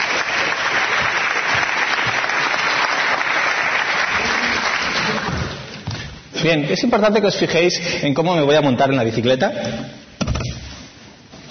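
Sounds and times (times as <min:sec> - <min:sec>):
audience applause: 0:00.0 - 0:05.8
speech: 0:06.4 - 0:10.0.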